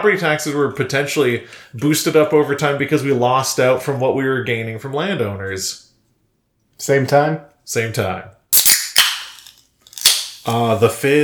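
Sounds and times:
speech: 0.0 - 5.9, 6.8 - 8.4, 10.4 - 11.2
fizzy drinks cracking open with pop and fizz: 8.6 - 11.2.

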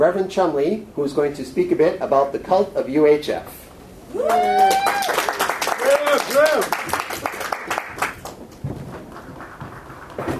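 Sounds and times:
speech: 0.0 - 5.5, 6.2 - 7.1
audience applause: 4.2 - 10.3.

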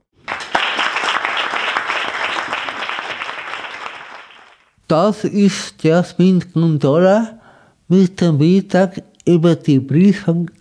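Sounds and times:
crowd applauding at an award ceremony: 0.0 - 4.7
speech: 4.9 - 10.5.

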